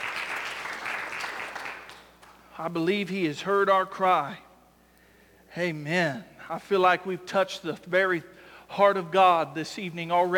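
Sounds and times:
audience hand clapping: 0.0 - 2.4
speech: 2.6 - 4.4, 5.5 - 10.3.

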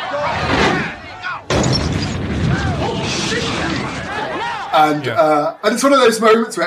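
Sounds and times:
car explosion in film: 0.2 - 4.7
speech: 5.0 - 6.6.

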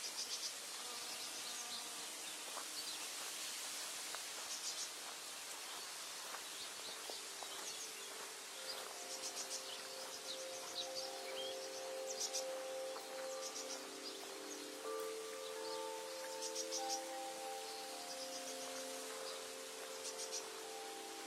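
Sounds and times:
birds singing: 0.0 - 3.7, 4.4 - 21.2
dense high hiss of insects: 0.0 - 21.2
clear sustained chime-like tones: 7.5 - 21.2.

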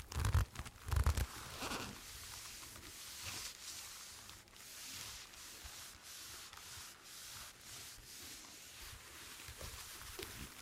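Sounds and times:
squeaky leather: 0.0 - 2.1.

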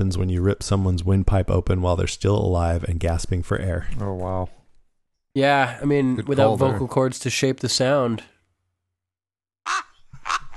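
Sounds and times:
speech: 0.0 - 4.6, 5.3 - 8.3
ravens calling: 9.7 - 10.5.

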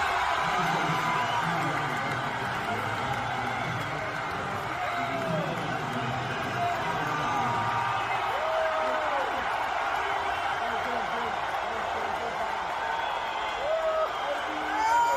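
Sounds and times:
huge stadium crowd cheering and shouting: 0.0 - 15.1
whistles: 12.8 - 14.8.

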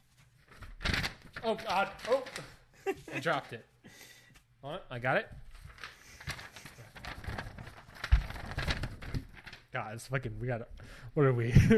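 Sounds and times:
paper crinkling and rustling: 0.0 - 3.6, 5.5 - 9.8
speech: 1.4 - 5.4, 9.7 - 11.7
laughter: 2.8 - 3.4.

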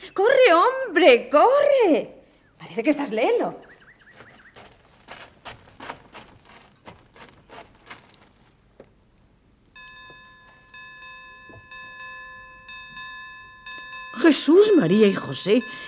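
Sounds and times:
speech: 0.1 - 3.6, 14.3 - 15.8
church bell rung frantically: 9.8 - 15.8.

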